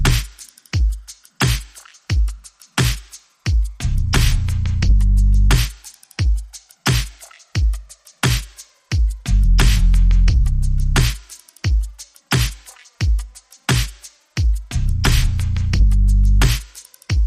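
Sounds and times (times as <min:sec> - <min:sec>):
bass: 0:00.0 - 0:00.2, 0:03.8 - 0:05.6, 0:09.3 - 0:11.1, 0:14.7 - 0:16.6
drums: 0:00.0 - 0:17.2.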